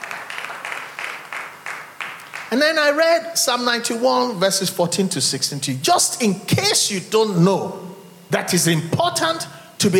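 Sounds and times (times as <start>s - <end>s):
audience clapping: 0.0s - 2.7s
speech: 2.5s - 9.9s.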